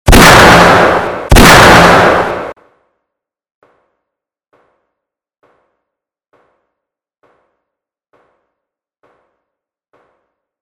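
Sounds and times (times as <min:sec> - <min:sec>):
gunshot: 0:00.1 - 0:02.6.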